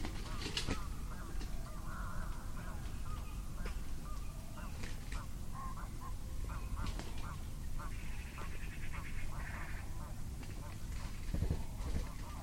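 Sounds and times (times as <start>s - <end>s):
bird rattling pi pi pi pi call: 0.0s - 12.4s.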